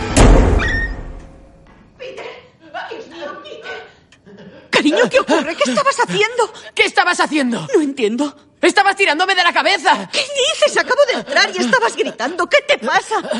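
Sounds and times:
door slamming shut by itself in the film Hereditary: 0.0 - 1.4
laughter: 2.6 - 6.3, 10.3 - 13.3
speech: 4.8 - 13.3.

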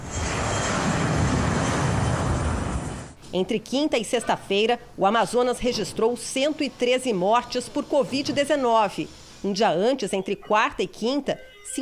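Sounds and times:
air force airplane taking off: 0.0 - 3.2
speech: 3.3 - 11.7.

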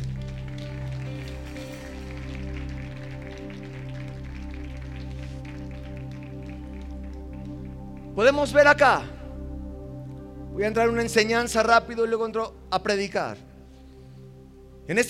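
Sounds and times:
audience applauding: 0.0 - 8.6
speech: 8.2 - 9.1, 10.6 - 13.5, 14.9 - 15.0.

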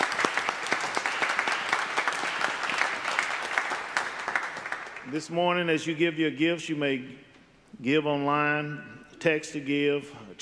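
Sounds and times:
audience applause: 0.0 - 5.1
speech: 5.1 - 10.4.

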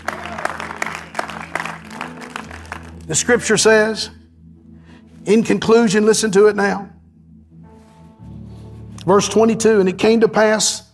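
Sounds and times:
audience clapping hands: 0.0 - 3.4
speech: 3.1 - 4.2, 5.3 - 6.9, 9.0 - 10.9.

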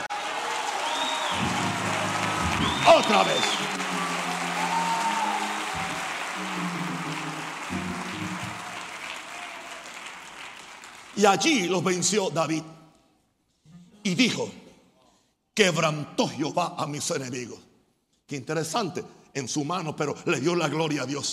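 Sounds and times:
audience applause: 0.0 - 11.5
speech: 2.9 - 3.6, 11.2 - 12.8, 14.0 - 14.6, 15.6 - 17.7, 18.3 - 21.3.

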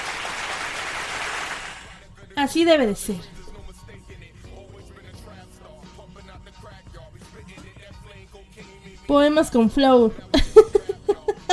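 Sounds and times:
audience applause: 0.0 - 2.0
speech: 2.4 - 3.4, 9.1 - 10.3
laughter: 10.3 - 11.5.

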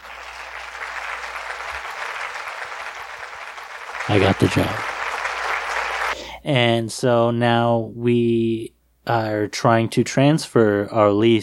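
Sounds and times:
crowd applause: 0.0 - 6.2
speech: 4.1 - 5.0, 6.4 - 11.4.

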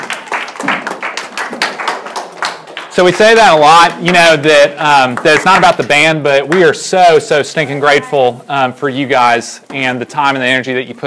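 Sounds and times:
audience round of applause: 0.0 - 3.8
speech: 3.0 - 11.0.

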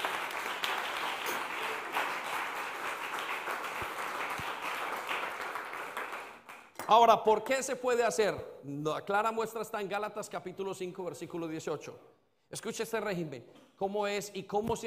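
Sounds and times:
audience applauding: 0.0 - 6.7
speech: 6.9 - 14.8.

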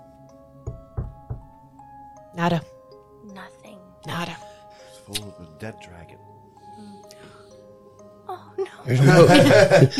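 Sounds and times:
knocking on a box: 0.7 - 1.6
speech: 2.4 - 2.7, 4.0 - 4.4, 5.1 - 6.4, 8.3 - 9.9
laughter: 8.9 - 9.9.

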